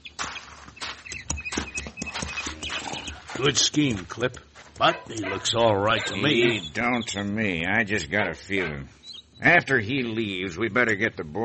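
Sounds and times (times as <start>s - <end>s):
horse hooves clip-clopping at a walking pace: 0.0s - 6.9s
speech: 3.4s - 11.4s.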